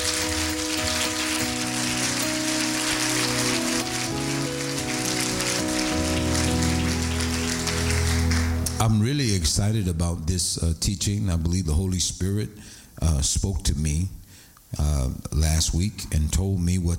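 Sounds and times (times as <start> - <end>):
audience clapping hands: 0.0 - 8.9
speech: 8.8 - 16.9.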